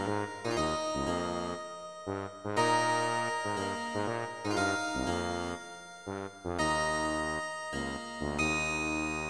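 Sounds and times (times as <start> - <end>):
chiptune music: 0.0 - 9.2
harpsichord: 0.0 - 9.2
tuba: 0.0 - 9.2.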